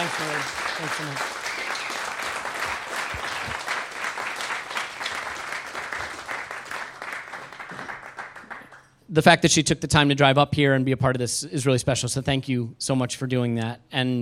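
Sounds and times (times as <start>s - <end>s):
speech: 0.0s - 1.4s, 9.1s - 14.2s
crowd applause for the Arsenal Foundation at the Victoria Tavern: 0.0s - 9.0s.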